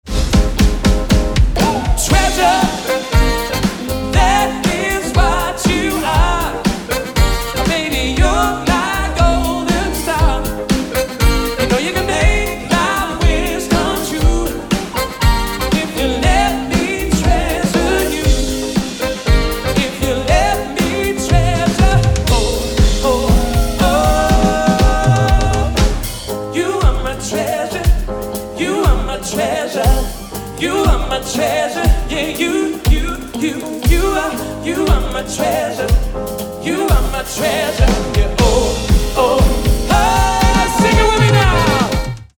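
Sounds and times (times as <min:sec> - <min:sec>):
soul band: 0:00.1 - 0:42.3.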